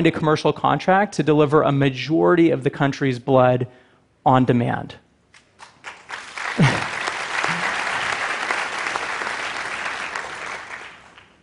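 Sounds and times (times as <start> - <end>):
speech: 0.0 - 5.0, 6.6 - 6.9
crowd applause: 5.8 - 11.4.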